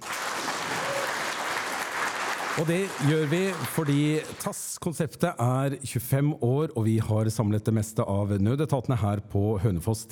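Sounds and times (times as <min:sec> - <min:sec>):
live audience applauding in a hall: 0:00.0 - 0:04.5
speech: 0:02.6 - 0:10.0.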